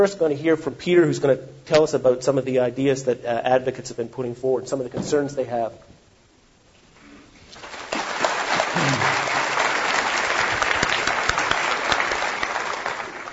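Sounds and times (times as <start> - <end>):
speech: 0.0 - 5.9
audience applause: 7.6 - 13.3.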